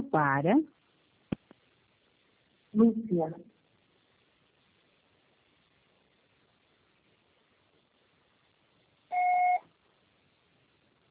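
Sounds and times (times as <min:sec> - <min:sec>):
faint hiss: 0:00.0 - 0:11.0
speech: 0:00.1 - 0:00.8, 0:02.8 - 0:03.5
Oi phone network voicemail beep: 0:09.1 - 0:09.6.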